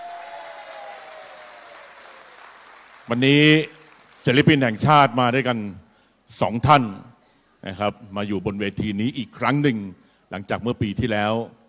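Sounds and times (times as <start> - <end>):
crowd applause: 0.0 - 4.5
speech: 3.1 - 11.6.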